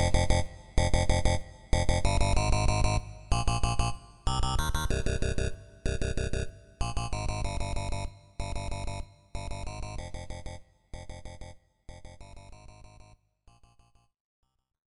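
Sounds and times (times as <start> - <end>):
8-bit music: 0.1 - 10.2.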